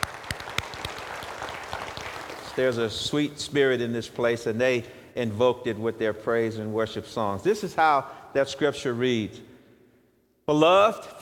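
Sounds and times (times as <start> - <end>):
audience applause: 0.0 - 2.8
speech: 2.6 - 9.5, 10.5 - 11.2.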